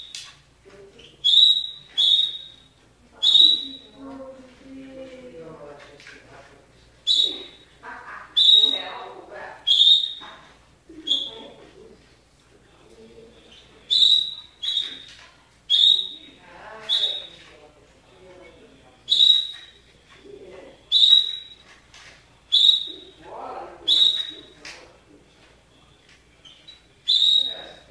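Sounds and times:
canary song with fast rolling trill: 0:01.0 - 0:04.4, 0:07.0 - 0:11.6, 0:13.3 - 0:17.5, 0:18.5 - 0:21.8, 0:22.5 - 0:24.6, 0:26.3 - 0:27.9.

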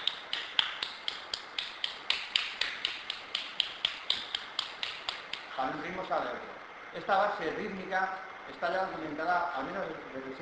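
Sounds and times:
flamenco palmas handclaps marking a fast amalgam rhythm: 0:00.0 - 0:06.2
speech: 0:05.6 - 0:10.4.

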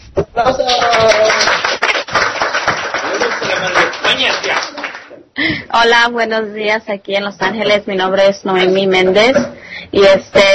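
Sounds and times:
speech: 0:00.4 - 0:01.7, 0:05.4 - 0:10.5
audience applause: 0:00.6 - 0:05.1.

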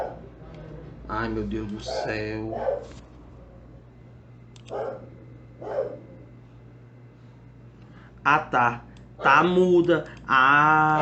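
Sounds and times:
dog barking: 0:00.0 - 0:00.3, 0:01.9 - 0:03.0, 0:04.7 - 0:06.2
steady low electrical hum: 0:00.0 - 0:10.9
speech: 0:01.1 - 0:03.1, 0:04.7 - 0:06.1, 0:08.2 - 0:10.9.

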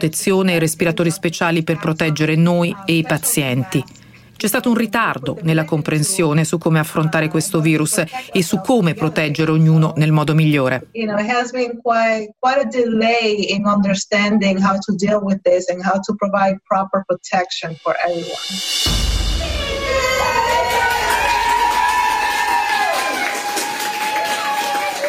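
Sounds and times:
speech: 0:00.0 - 0:19.1
applause and cheering from city windows in Brooklyn, Queens and the Bronx: 0:19.4 - 0:25.0.

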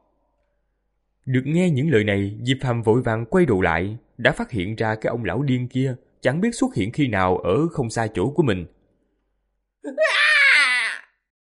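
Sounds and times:
speech: 0:01.2 - 0:08.8, 0:09.8 - 0:10.2
anguished scream, audiobook sound effect: 0:09.9 - 0:11.3.

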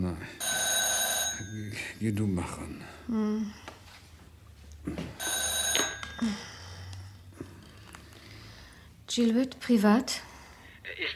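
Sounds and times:
telephone ringing: 0:00.4 - 0:01.6, 0:05.2 - 0:06.5
speech: 0:02.0 - 0:03.7, 0:09.2 - 0:10.3.

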